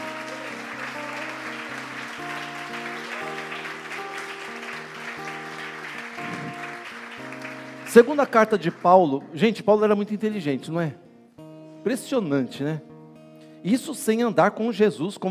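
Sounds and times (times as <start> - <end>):
audience clapping: 0.0 - 9.3
sustained keyboard or organ chords: 0.0 - 11.0
speech: 7.9 - 11.0, 11.8 - 12.9, 13.6 - 15.2.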